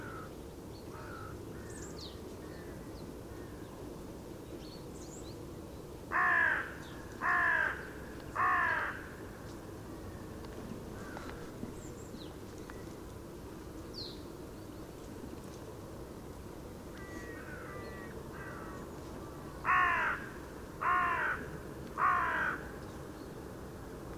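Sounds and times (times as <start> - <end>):
Carrion crow Corvus corone giving short harsh caws: 0.0 - 0.3, 0.9 - 1.7, 6.1 - 9.2, 11.0 - 11.4, 17.0 - 18.8, 19.6 - 22.7.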